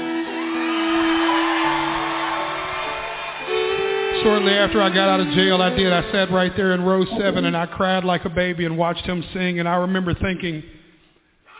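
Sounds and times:
whoop or whistle: 0.0s - 4.9s
large crowd cheering: 0.0s - 7.8s
speech: 4.2s - 10.8s.

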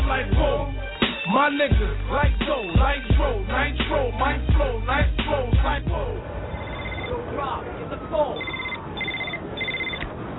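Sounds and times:
speech: 0.2s - 6.5s, 7.1s - 8.7s
telephone ringing in electronic trills: 6.5s - 7.2s, 8.3s - 10.1s.

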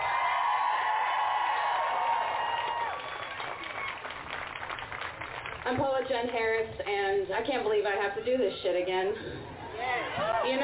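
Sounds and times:
audience applause and cheering: 0.0s - 6.4s
speech: 5.7s - 10.6s.

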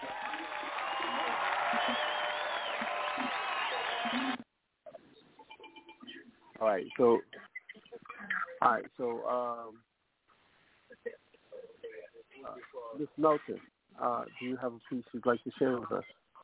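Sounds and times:
applause: 0.0s - 4.4s
speech: 6.6s - 7.4s, 8.6s - 9.9s, 12.5s - 16.2s.

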